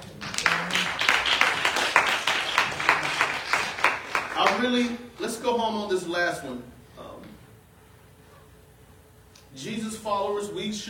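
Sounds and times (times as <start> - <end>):
audience applauding: 0.0 - 4.9
speech: 4.6 - 6.8, 9.6 - 10.8.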